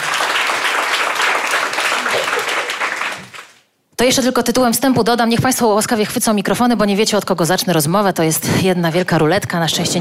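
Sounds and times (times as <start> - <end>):
crowd applause: 0.0 - 3.6
speech: 4.0 - 9.9.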